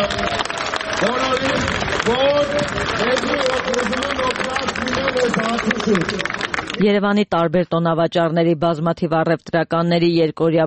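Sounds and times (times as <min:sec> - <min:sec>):
crowd applause for a speaker at a traders' protest gathering in Yerevan: 0:00.0 - 0:06.8
speech: 0:05.2 - 0:10.6.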